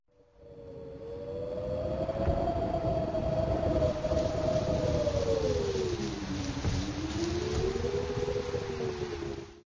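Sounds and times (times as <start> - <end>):
wind: 0.1 - 9.6
rain: 1.1 - 9.6.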